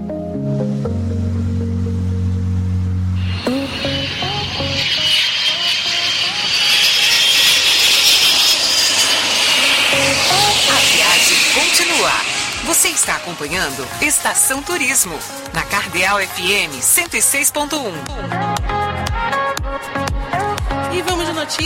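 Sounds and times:
sustained musical tones: 0.0 - 21.5
airplane taking off with jet engine roar: 2.5 - 18.1
speech: 13.0 - 18.7, 21.0 - 21.6.

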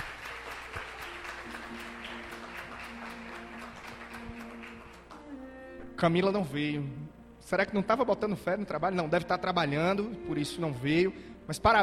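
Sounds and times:
audience applause: 0.0 - 5.2
speech: 6.0 - 11.8.

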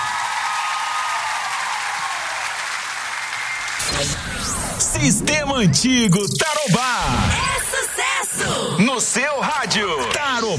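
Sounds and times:
audience applause: 0.0 - 3.8
speech: 4.0 - 7.4, 8.8 - 10.5.

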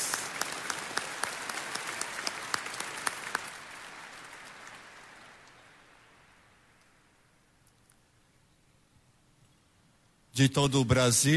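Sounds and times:
applause: 0.0 - 6.7
speech: 10.4 - 11.3.

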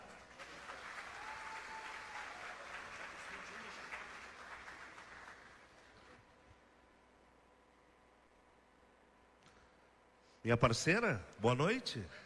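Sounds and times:
audience applause: 0.0 - 5.9
speech: 10.4 - 12.2.

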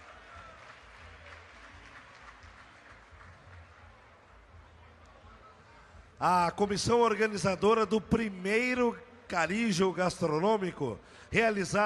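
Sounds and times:
large audience applause: 0.0 - 4.4
faint crowd noise: 0.0 - 11.8
speech: 6.2 - 11.8.

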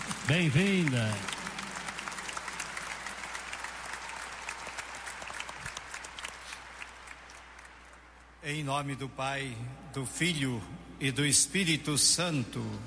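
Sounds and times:
audience giving warm round of applause: 0.0 - 8.2
speech: 0.3 - 1.3, 8.4 - 12.8.

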